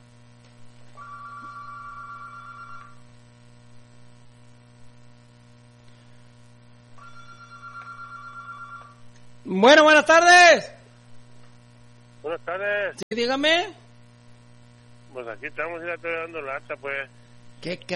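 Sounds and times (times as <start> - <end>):
faint static: 0.0 - 17.9
low mains hum: 0.0 - 17.9
telephone ringing in electronic trills: 0.9 - 3.0, 7.0 - 9.0
speech: 9.5 - 10.7, 12.3 - 13.8, 15.2 - 17.9.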